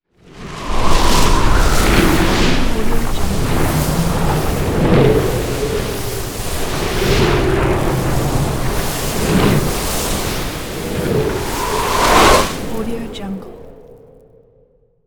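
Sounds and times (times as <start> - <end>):
elemental sand spell cast: 0.4 - 13.7.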